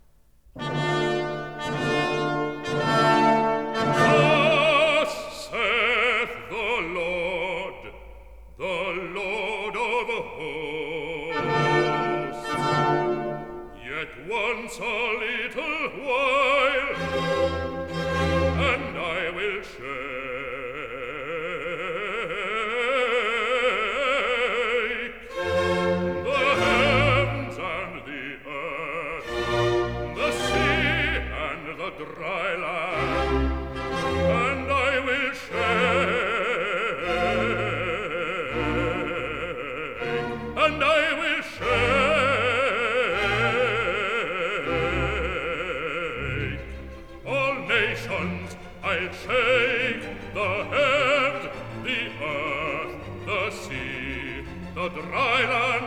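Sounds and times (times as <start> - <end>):
bass singing recitative: 0.6 - 55.8.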